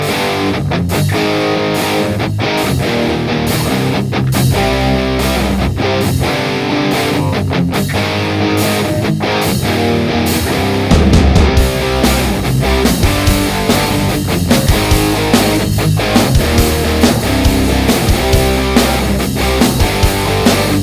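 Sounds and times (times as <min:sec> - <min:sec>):
dark bass: 0:00.2 - 0:20.8.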